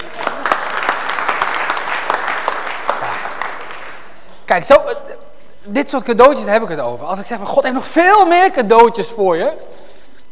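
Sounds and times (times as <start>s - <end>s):
applause for a child during a church talk: 0.0s - 4.5s
speech: 4.5s - 5.1s, 5.7s - 9.7s.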